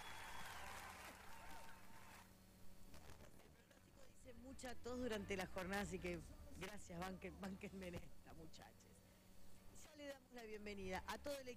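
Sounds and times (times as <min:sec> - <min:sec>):
crowd clapping: 0:00.0 - 0:02.3
speech: 0:04.4 - 0:09.0, 0:09.8 - 0:11.5.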